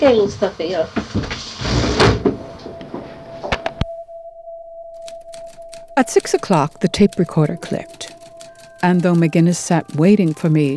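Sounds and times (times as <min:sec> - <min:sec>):
speech: 0:00.0 - 0:01.5, 0:06.0 - 0:08.1, 0:08.8 - 0:10.7
window being opened: 0:01.1 - 0:03.7.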